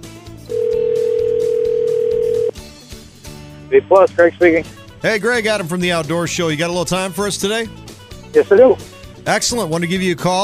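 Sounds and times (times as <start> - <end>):
telephone line tone: 0.5 - 2.5
speech: 3.7 - 10.4.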